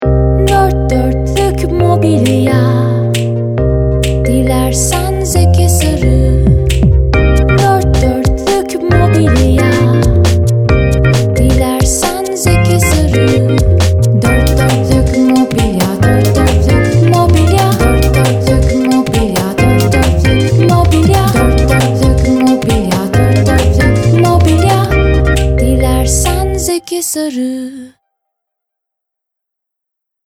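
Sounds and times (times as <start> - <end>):
jingle: 0.4 - 26.8.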